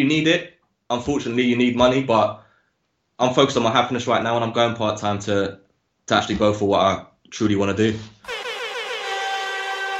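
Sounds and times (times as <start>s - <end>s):
speech: 0.0s - 2.4s, 3.2s - 8.2s
game show buzzer: 8.3s - 9.9s.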